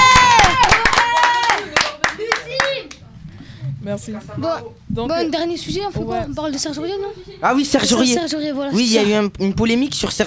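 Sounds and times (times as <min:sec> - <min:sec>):
audience applauding: 0:00.0 - 0:03.0
speech: 0:03.9 - 0:10.2.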